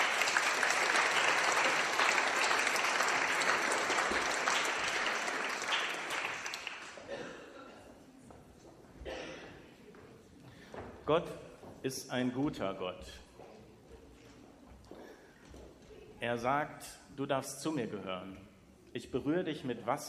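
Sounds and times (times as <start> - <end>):
audience applause: 0.0 - 7.1
speech: 11.1 - 13.2, 16.2 - 20.0.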